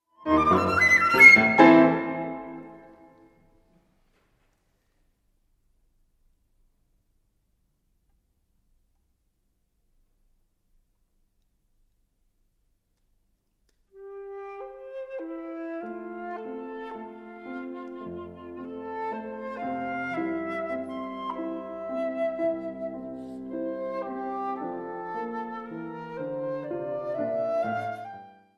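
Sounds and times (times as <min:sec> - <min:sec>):
flute sonata in D major: 0:00.0 - 0:03.4, 0:13.9 - 0:28.5.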